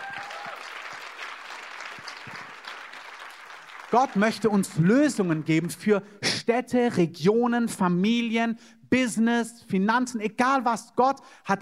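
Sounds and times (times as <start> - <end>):
audience applause: 0.0 - 5.7
speech: 3.9 - 11.6.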